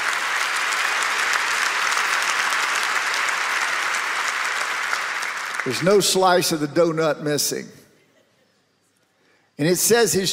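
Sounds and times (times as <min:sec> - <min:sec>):
audience clapping hands: 0:00.0 - 0:06.5
speech: 0:05.6 - 0:07.8, 0:09.6 - 0:10.3.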